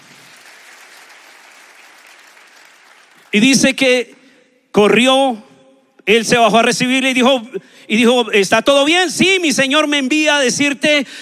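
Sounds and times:
audience applause: 0:00.0 - 0:03.4
speech: 0:03.3 - 0:04.2, 0:04.8 - 0:11.2.

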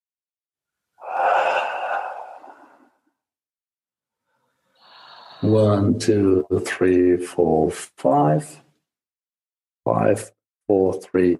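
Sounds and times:
slow guided breathing, inhaling and exhaling: 0:01.0 - 0:03.3, 0:04.3 - 0:05.5
speech: 0:05.4 - 0:08.6, 0:09.9 - 0:11.3.

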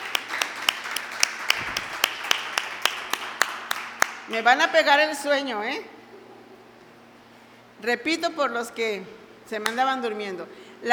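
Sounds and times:
audience applause: 0:00.0 - 0:04.2
speech: 0:04.3 - 0:06.0, 0:07.8 - 0:10.9.

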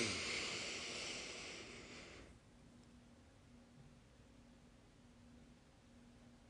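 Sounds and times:
long exhale through an open mouth during a breathing exercise: 0:00.0 - 0:02.3.

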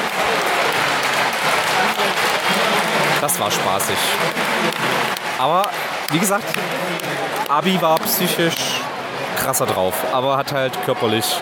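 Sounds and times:
applause: 0:00.0 - 0:08.8
speech: 0:03.2 - 0:08.7, 0:09.5 - 0:11.4.

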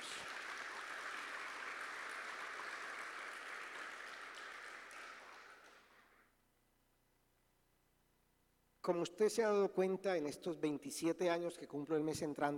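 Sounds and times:
audience applauding: 0:00.0 - 0:06.2
speech: 0:08.8 - 0:12.5.

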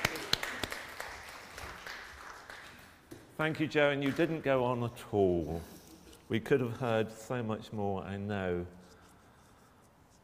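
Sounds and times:
audience clapping: 0:00.0 - 0:03.1
speech: 0:03.4 - 0:08.8.

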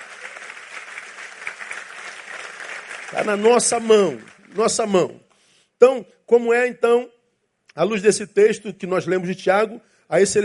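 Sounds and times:
audience applauding: 0:00.0 - 0:05.2
speech: 0:03.1 - 0:05.2, 0:05.8 - 0:07.1, 0:07.7 - 0:10.4.

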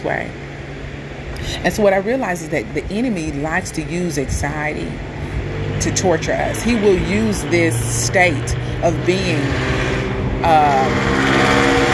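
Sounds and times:
speech: 0:00.0 - 0:00.5, 0:01.4 - 0:05.2, 0:05.8 - 0:11.8
car passing by outside a patio: 0:05.2 - 0:11.9.

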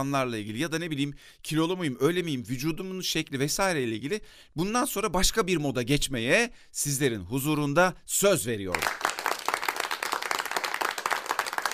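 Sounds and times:
speech: 0:00.0 - 0:09.0
audience applauding: 0:08.7 - 0:11.7.

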